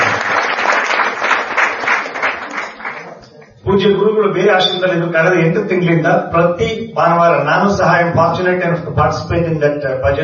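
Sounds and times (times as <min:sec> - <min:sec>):
audience clapping at a devotional gathering as a guru arrives: 0:00.0 - 0:03.5
speech: 0:03.8 - 0:10.2.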